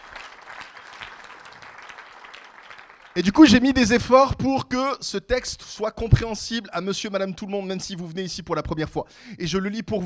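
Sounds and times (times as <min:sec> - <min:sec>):
audience clapping: 0:00.0 - 0:04.0
speech: 0:03.2 - 0:10.0.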